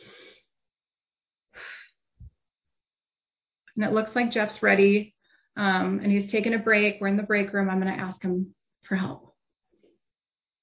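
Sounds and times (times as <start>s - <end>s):
person taking a deep breath: 0.0s - 0.5s, 1.6s - 1.9s, 5.2s - 5.6s
speech: 3.8s - 9.3s.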